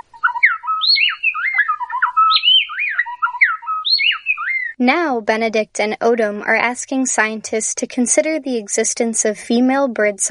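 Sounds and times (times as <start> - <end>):
black-bellied wren pair singing a duet: 0.0 - 4.8
speech: 4.8 - 10.2.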